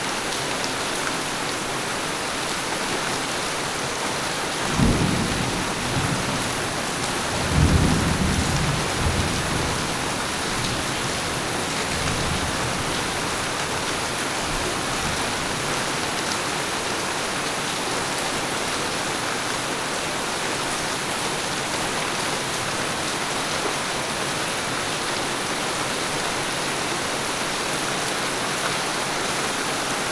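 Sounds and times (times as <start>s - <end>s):
steady downpour: 0.0s - 30.1s
thunder: 4.7s - 10.9s.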